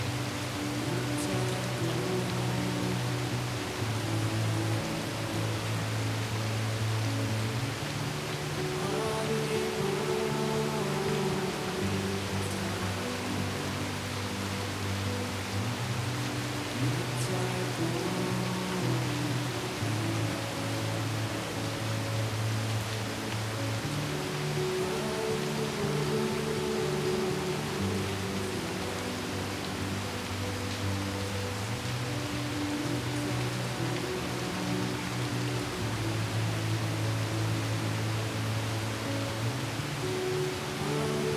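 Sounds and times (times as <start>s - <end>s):
gentle sleep melody: 0.0s - 41.3s
rain: 0.0s - 41.3s.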